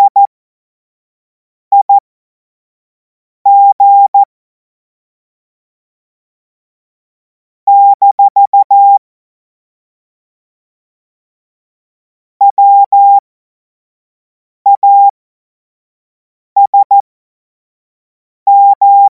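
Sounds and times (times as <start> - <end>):
Morse code course tones: 0.0 - 0.3, 3.5 - 4.3, 7.7 - 9.0, 12.5 - 13.2, 14.7 - 15.1, 16.6 - 17.0, 18.5 - 19.1.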